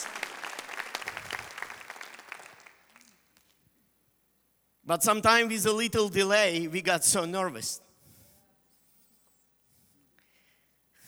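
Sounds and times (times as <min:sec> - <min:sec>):
audience clapping: 0:00.0 - 0:03.5
speech: 0:04.9 - 0:07.8.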